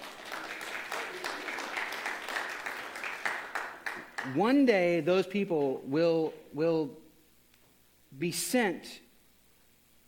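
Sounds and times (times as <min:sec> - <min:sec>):
audience clapping: 0:00.0 - 0:04.4
speech: 0:04.2 - 0:07.0, 0:08.2 - 0:09.0.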